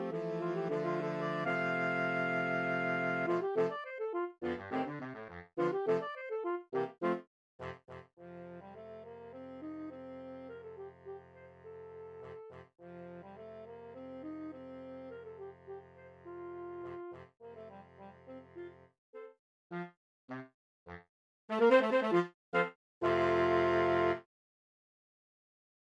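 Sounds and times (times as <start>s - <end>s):
soprano alto tenor and baritone saxophone quartet playing a gigue: 0.0s - 7.2s, 8.2s - 18.8s, 21.5s - 24.2s.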